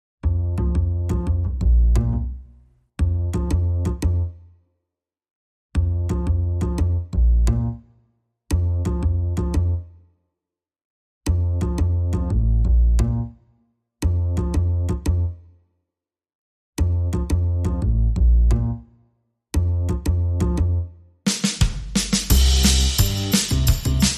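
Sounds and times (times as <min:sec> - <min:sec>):
bass: 0:00.2 - 0:04.6, 0:05.7 - 0:10.0, 0:11.2 - 0:15.5, 0:16.8 - 0:24.1
drums: 0:21.3 - 0:24.1.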